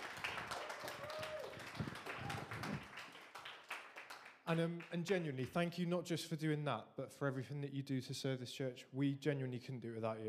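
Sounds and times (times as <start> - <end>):
audience applause: 0.0 - 5.2
speech: 4.5 - 10.2.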